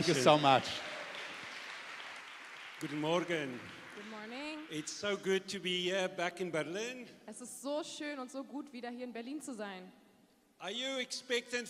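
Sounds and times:
speech: 0.0s - 0.9s, 2.8s - 10.0s, 10.6s - 11.6s
audience applause: 0.0s - 5.2s.

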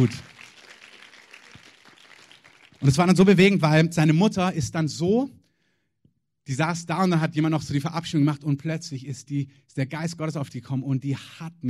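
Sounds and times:
speech: 0.0s - 0.3s, 2.8s - 5.4s, 6.4s - 11.6s
audience applause: 0.0s - 3.2s.

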